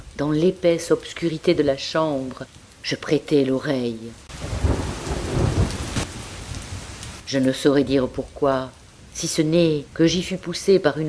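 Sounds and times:
speech: 0.2 - 4.3, 7.3 - 11.0
storm: 4.2 - 10.6.

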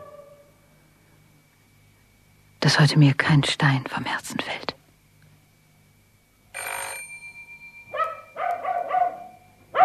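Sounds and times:
speech: 2.6 - 4.7
bell ringing: 6.6 - 9.7
dog barking: 7.9 - 9.8.

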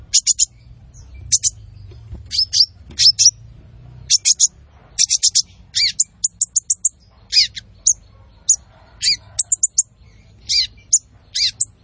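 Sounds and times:
olive-backed sunbird singing: 0.0 - 11.8.

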